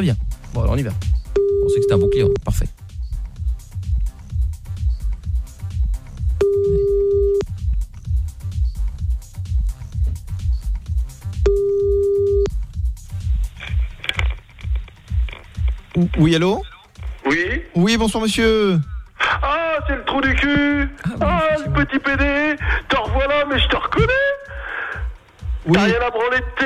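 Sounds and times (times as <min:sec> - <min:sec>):
speech: 0:00.0 - 0:02.8, 0:16.0 - 0:16.7, 0:17.3 - 0:18.9, 0:19.8 - 0:22.9, 0:25.7 - 0:26.6
pulsing rhythmic music bed: 0:00.0 - 0:26.6
outgoing phone call ringback tones: 0:01.4 - 0:02.4, 0:06.4 - 0:07.4, 0:11.5 - 0:12.5.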